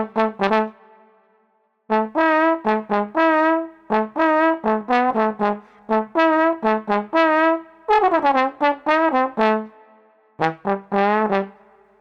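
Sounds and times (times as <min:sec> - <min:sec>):
bouncy street trombone: 0:00.0 - 0:00.8, 0:01.9 - 0:09.7, 0:10.4 - 0:11.8.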